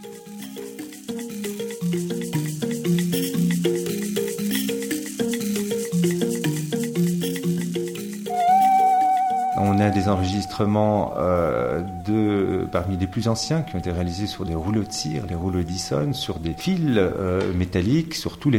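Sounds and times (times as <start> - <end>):
Tuareg drumming: 0.0 - 17.8
high sustained tone: 8.2 - 17.5
speech: 9.8 - 18.5.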